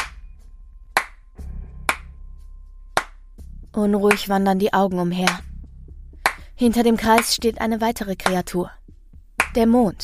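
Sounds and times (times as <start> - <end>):
sarcastic slow clapping: 1.0 - 1.2, 1.9 - 2.1, 3.0 - 3.2, 6.2 - 6.5, 9.4 - 9.6
speech: 3.8 - 5.5, 6.6 - 8.8, 9.5 - 10.0.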